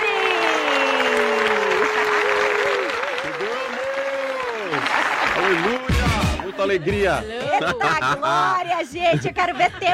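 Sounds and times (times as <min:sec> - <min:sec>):
warm round of applause: 0:00.0 - 0:06.3
laughter: 0:06.0 - 0:09.9
speech: 0:06.6 - 0:09.9.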